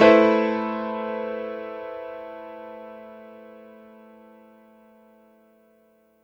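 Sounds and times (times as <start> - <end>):
layered piano stack in A minor: 0.0 - 5.0.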